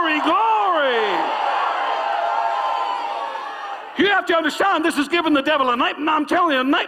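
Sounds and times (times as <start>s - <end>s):
crowd shouting and cheering: 0.0s - 4.6s
speech: 0.2s - 1.2s, 4.0s - 6.8s.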